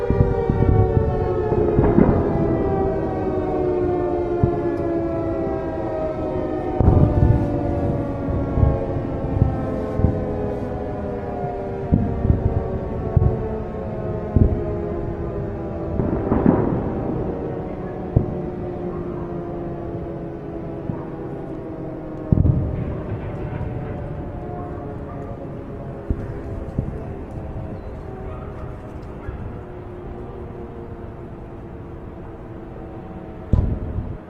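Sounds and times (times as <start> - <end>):
air raid siren: 0.0 - 34.2
battlefield sounds: 0.0 - 34.2.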